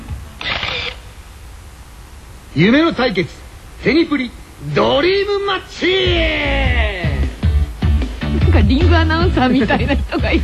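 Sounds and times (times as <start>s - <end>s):
camera shutter taking a photo: 0.4s - 1.1s
speech: 2.6s - 6.8s, 8.5s - 10.4s
laughter: 8.4s - 10.4s.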